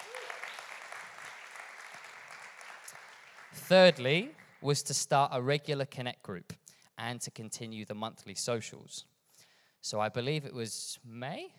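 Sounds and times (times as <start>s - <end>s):
applause: 0.0s - 4.8s
speech: 3.6s - 9.1s, 9.8s - 11.5s.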